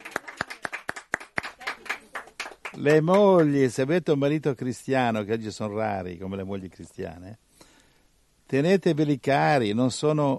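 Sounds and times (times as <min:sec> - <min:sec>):
audience rhythmic clapping: 0:00.0 - 0:03.6
speech: 0:02.8 - 0:07.4, 0:08.5 - 0:10.3.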